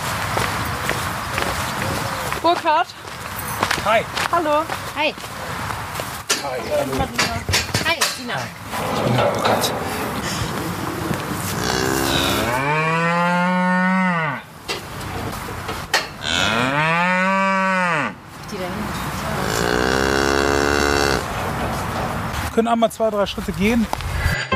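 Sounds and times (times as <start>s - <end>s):
steady noise: 0.0s - 24.4s
speech: 2.4s - 3.0s, 3.8s - 5.4s, 6.4s - 10.5s, 22.6s - 24.0s
cattle mooing in a barn: 11.4s - 14.5s, 16.2s - 18.2s, 19.2s - 21.3s.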